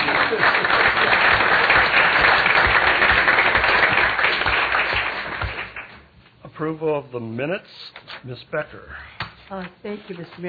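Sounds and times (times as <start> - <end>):
group applause: 0.0 - 6.0
speech: 6.7 - 10.4.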